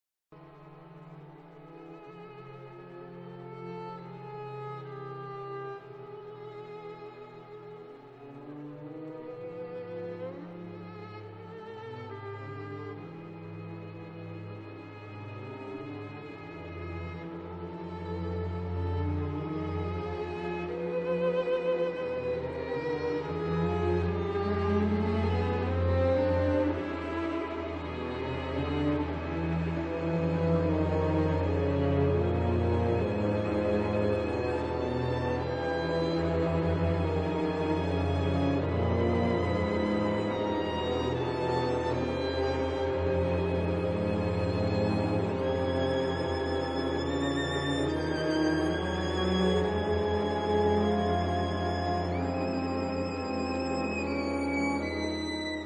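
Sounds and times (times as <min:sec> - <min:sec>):
violin concerto: 0:00.4 - 0:55.6.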